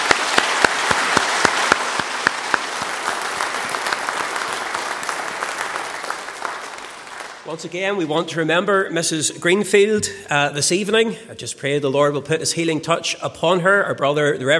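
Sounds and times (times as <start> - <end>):
audience applause: 0.0 - 7.8
speech: 7.5 - 14.5.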